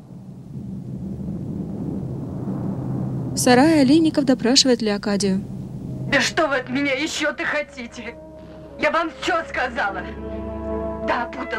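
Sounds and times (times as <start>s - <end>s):
truck explosion rumbling: 0.0s - 7.4s
speech: 3.4s - 5.5s, 6.1s - 8.2s, 8.8s - 10.3s, 11.1s - 11.5s.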